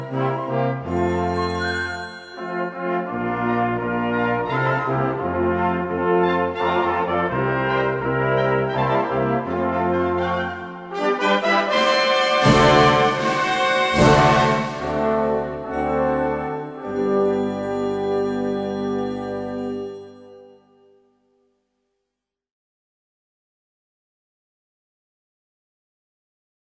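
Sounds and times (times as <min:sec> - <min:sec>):
brass band music: 0:00.0 - 0:20.6.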